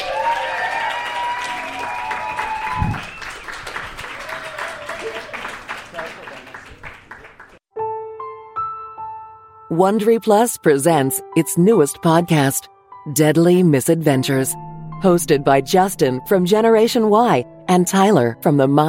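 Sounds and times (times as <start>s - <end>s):
audience applause at a live show: 0.0s - 7.6s
speech: 9.7s - 18.8s.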